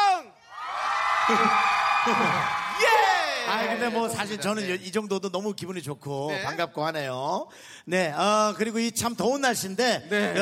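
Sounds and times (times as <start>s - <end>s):
crowd cheering and shouting: 0.0s - 4.4s
speech: 1.3s - 10.3s.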